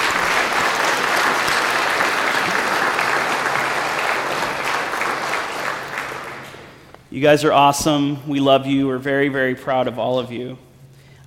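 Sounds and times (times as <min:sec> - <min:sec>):
audience applause: 0:00.0 - 0:06.9
speech: 0:07.2 - 0:10.6.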